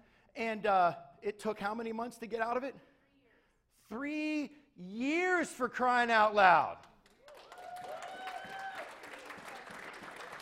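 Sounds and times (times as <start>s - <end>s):
speech: 0.4s - 2.9s, 3.9s - 6.9s
crowd clapping: 6.8s - 10.4s
whistling and cheering: 7.4s - 9.2s.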